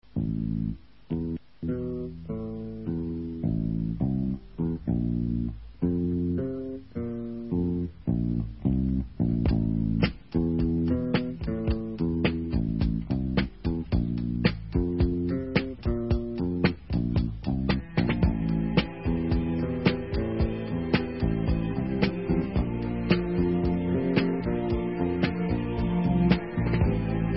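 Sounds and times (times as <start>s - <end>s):
instrumental music: 0.0s - 27.3s.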